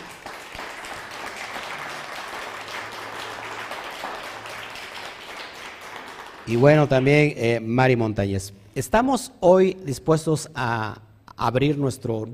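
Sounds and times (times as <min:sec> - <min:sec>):
applause: 0:00.0 - 0:07.3
speech: 0:06.5 - 0:12.3.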